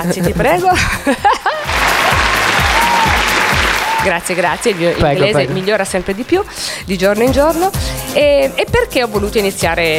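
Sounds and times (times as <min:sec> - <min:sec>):
speech: 0:00.0 - 0:01.5, 0:04.0 - 0:09.9
laughter: 0:00.8 - 0:06.9
applause sound effect: 0:01.6 - 0:06.8.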